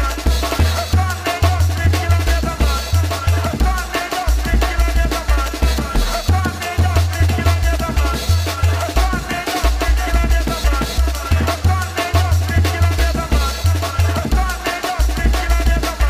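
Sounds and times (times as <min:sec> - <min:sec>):
beats: 0:00.0 - 0:16.0.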